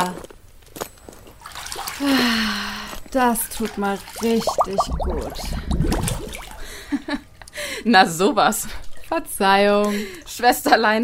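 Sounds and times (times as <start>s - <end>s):
water splashing and sloshing in a bathtub: 1.4s - 6.9s
speech: 3.1s - 6.2s, 7.8s - 11.0s.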